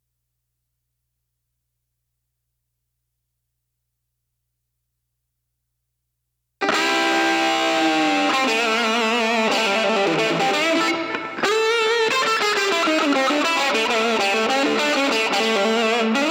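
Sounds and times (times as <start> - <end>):
lead guitar: 6.6 - 16.3.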